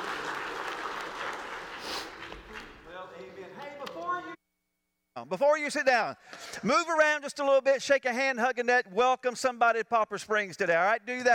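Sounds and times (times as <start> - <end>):
church congregation applauding during a morning worship service: 0.0 - 3.8
speech: 5.3 - 11.3.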